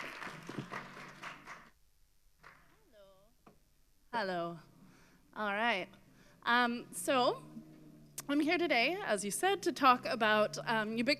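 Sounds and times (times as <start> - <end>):
audience applause: 0.0 - 1.7
speech: 4.2 - 4.7, 5.4 - 7.6, 8.3 - 11.1.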